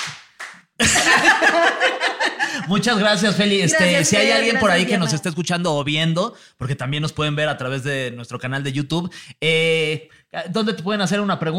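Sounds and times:
applause, hands clapping: 0.0s - 1.0s
laughter: 0.8s - 3.0s
speech: 2.6s - 11.5s.

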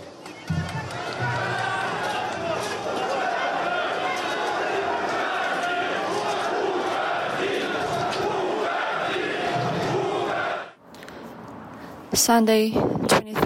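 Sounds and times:
rally crowd chanting a repeated short phrase: 0.2s - 10.8s
speech: 12.2s - 13.4s.

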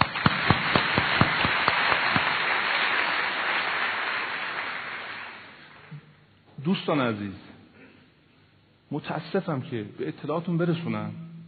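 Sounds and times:
audience applause at a live Persian comedy performance: 0.0s - 5.7s
speech: 6.7s - 7.5s, 8.9s - 11.3s.

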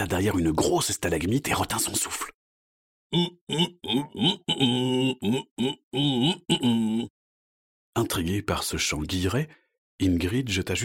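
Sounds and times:
speech: 0.0s - 2.4s, 3.1s - 7.2s, 8.0s - 10.8s
creature grunting: 3.1s - 7.1s.

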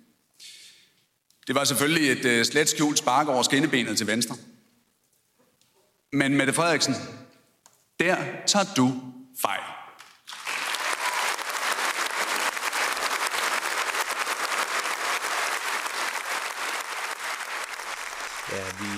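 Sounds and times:
speech: 1.5s - 4.6s, 6.1s - 7.2s, 8.0s - 9.8s
audience applause at a political speech: 10.3s - 18.9s.

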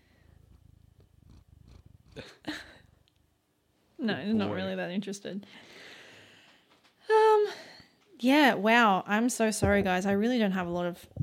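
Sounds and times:
cat purring: 0.0s - 3.2s
speech: 4.0s - 5.8s, 8.2s - 11.2s.

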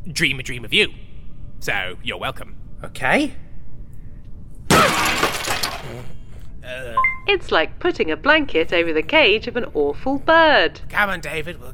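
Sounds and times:
speech: 0.1s - 1.0s, 1.6s - 3.4s, 5.9s - 11.7s
table breaking with a crash: 4.7s - 6.0s.

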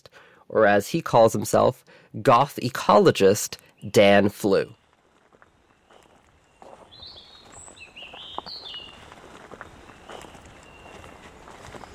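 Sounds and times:
speech: 0.5s - 4.8s
birds chirping: 1.1s - 11.9s
footsteps walking up through the wooded part of a cemetery: 4.3s - 11.9s.

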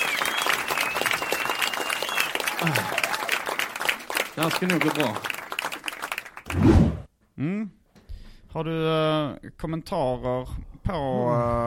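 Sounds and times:
brief audience applause: 0.0s - 6.5s
speech: 2.6s - 3.0s, 4.4s - 5.3s, 8.5s - 11.6s.

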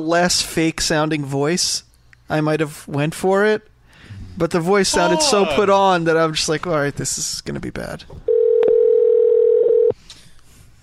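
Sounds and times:
speech: 0.0s - 8.3s
telephone dial tone after failed attempt to put a caller on air: 8.3s - 9.9s.

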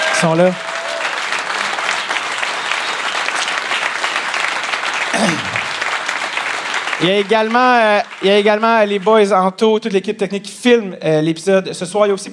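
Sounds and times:
audience applause: 0.0s - 9.4s
speech: 0.2s - 0.7s, 5.2s - 5.5s, 7.0s - 12.3s.

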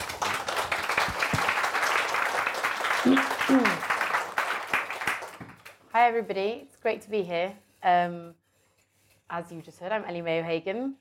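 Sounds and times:
audience applause at a talk event: 0.0s - 5.8s
speech: 3.0s - 3.9s, 6.0s - 8.4s, 9.3s - 10.9s.

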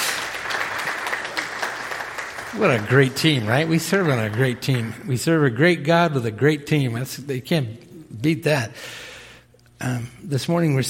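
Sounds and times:
audience applause: 0.0s - 5.2s
speech: 2.5s - 9.0s, 9.8s - 10.8s.

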